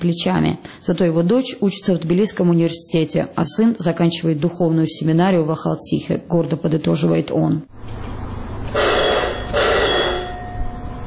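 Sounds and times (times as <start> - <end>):
speech: 0.0 - 8.1
low steady hum: 7.7 - 11.0
electric bell signalling mine cable car departure: 8.7 - 11.0.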